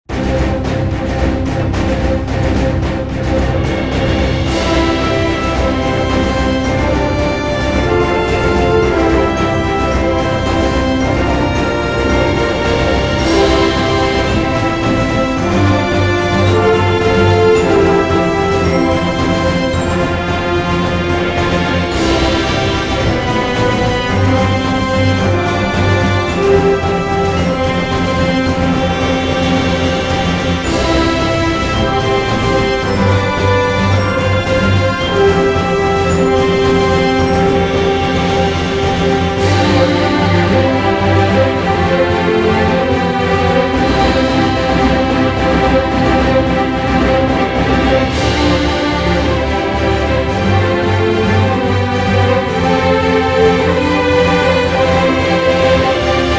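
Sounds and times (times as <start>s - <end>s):
fanfare: 0.1s - 56.3s.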